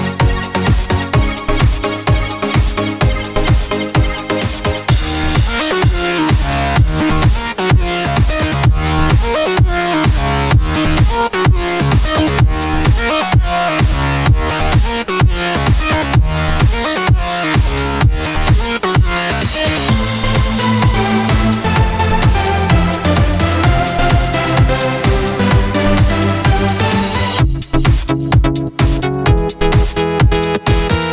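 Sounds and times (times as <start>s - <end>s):
electro music: 0.0s - 31.1s.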